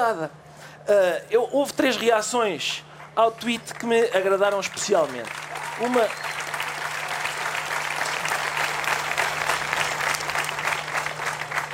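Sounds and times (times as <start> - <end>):
speech: 0.0 - 6.3
crowd applause for a band: 3.7 - 11.7.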